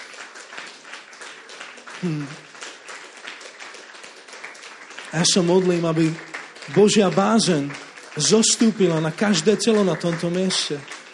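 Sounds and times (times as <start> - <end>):
large crowd applauding: 0.0 - 11.1
vocal cry: 2.0 - 2.4
speech: 2.0 - 2.5, 5.1 - 11.0.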